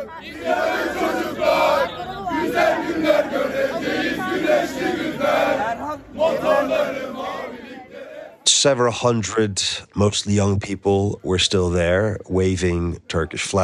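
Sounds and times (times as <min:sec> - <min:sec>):
large crowd chanting and singing at political rally: 0:00.0 - 0:08.5
speech: 0:08.6 - 0:13.6.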